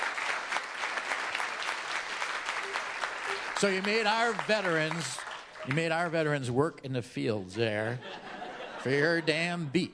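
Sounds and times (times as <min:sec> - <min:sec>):
audience applause: 0:00.0 - 0:06.2
speech: 0:03.6 - 0:08.2, 0:08.8 - 0:09.9
laughter: 0:07.7 - 0:09.7.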